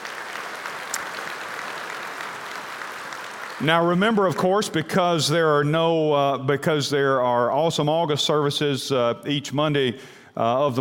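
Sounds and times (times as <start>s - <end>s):
Ridgecrest congregation applauding during a church service: 0.0s - 4.4s
speech: 3.6s - 10.7s.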